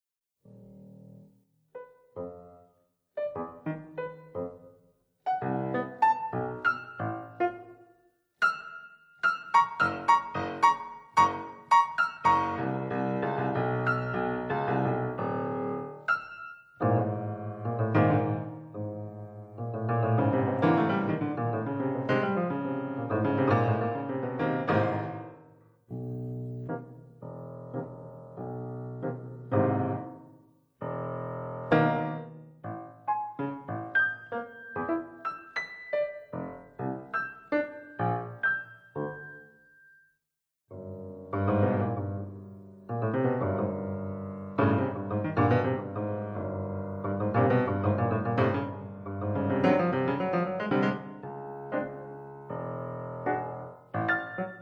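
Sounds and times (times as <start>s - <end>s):
piano: 0.0s - 54.6s.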